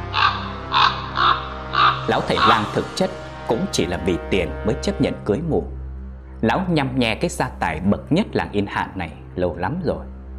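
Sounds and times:
crow cawing: 0.0 - 2.9
speech: 2.1 - 5.8, 6.4 - 10.1.

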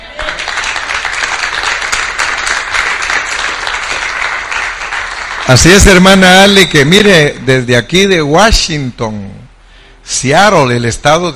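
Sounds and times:
audience applause: 0.1 - 6.0
speech: 5.5 - 9.4, 10.1 - 11.3.

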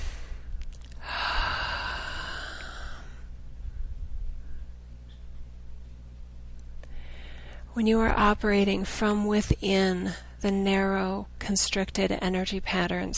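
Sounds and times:
slow deep breath: 0.0 - 3.3, 6.9 - 7.7
quiet hum: 0.0 - 13.1
speech: 7.8 - 13.1.

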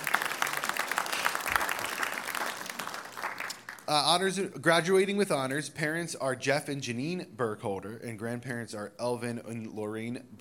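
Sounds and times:
audience applause: 0.0 - 3.9
speech: 3.9 - 10.3.

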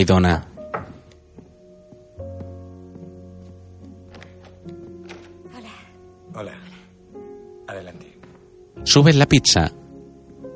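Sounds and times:
speech: 0.0 - 0.5, 8.9 - 9.8
knocking on a door: 0.7 - 1.1.

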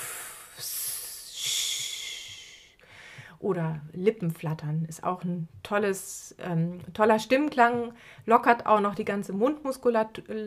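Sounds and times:
voice making sustained hissing sibilant sounds: 0.0 - 2.8
speech: 3.4 - 10.4.

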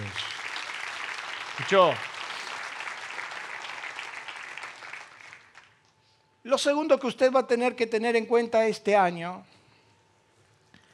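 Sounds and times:
applause: 0.0 - 5.9
speech: 1.6 - 2.1, 6.5 - 9.5.

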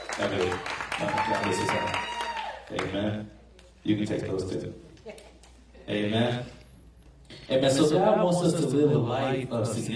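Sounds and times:
crowd applause: 0.0 - 2.9
speech: 0.2 - 2.1, 2.7 - 5.2, 5.9 - 6.6, 7.3 - 9.9.

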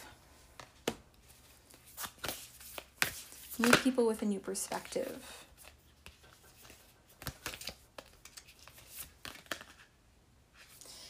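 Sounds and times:
oracle cards drawn from a deck during a tarot reading: 0.5 - 4.0, 5.6 - 9.9
speech: 3.6 - 5.5.

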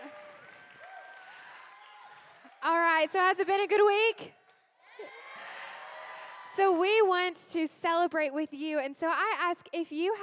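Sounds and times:
audience round of applause: 0.0 - 2.7
speech: 2.6 - 4.4, 6.6 - 10.2.

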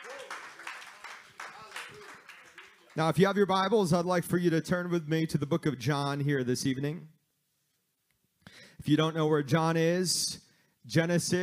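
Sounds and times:
audience clapping: 0.0 - 3.6
speech: 3.0 - 7.2, 8.8 - 11.4.

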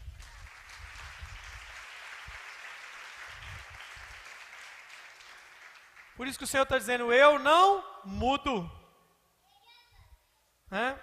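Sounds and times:
audience applause: 0.0 - 6.4
speech: 6.2 - 8.8, 10.7 - 11.0.

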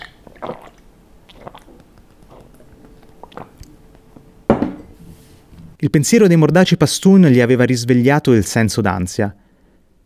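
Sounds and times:
person gulping the last sip of alcohol from a mug: 0.0 - 4.3
mug clunking: 4.5 - 4.9
speech: 5.8 - 9.4.

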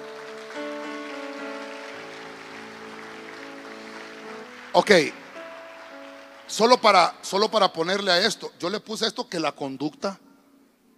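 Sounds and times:
audience clapping loudly: 0.0 - 8.2
sustained keyboard chords: 0.0 - 10.9
speech: 4.7 - 5.2, 6.5 - 10.2.

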